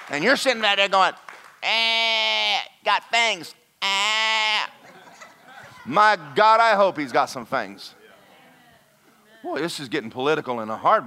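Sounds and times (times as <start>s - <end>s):
speech: 0.1s - 2.2s, 2.8s - 4.0s, 5.9s - 8.0s, 9.4s - 11.0s
man imitating a sheep bleating: 1.6s - 4.8s
laughter: 4.6s - 7.2s.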